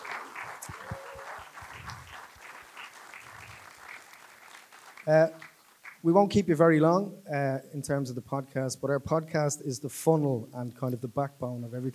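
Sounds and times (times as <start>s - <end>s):
high cheer or whoop: 0.0s - 5.0s
crowd clapping: 0.0s - 6.0s
speech: 5.0s - 5.4s, 6.0s - 11.9s.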